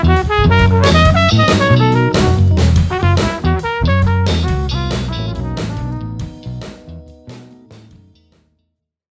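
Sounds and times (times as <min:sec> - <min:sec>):
funk blues flugelhorn solo: 0:00.0 - 0:06.2.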